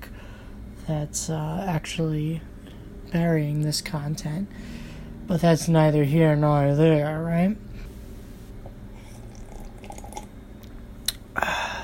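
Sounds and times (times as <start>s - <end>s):
speech: 0.9s - 2.5s, 3.1s - 7.7s
person sipping coffee: 8.6s - 11.2s.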